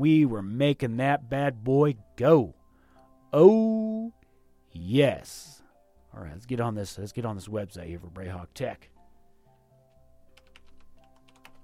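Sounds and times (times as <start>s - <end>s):
speech: 0.0s - 2.6s, 3.3s - 8.9s
typing on a computer keyboard: 9.9s - 11.6s.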